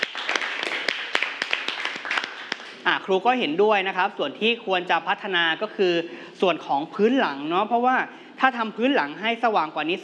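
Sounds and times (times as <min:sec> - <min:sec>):
classroom group clapping: 0:00.0 - 0:02.9
speech: 0:02.9 - 0:10.0.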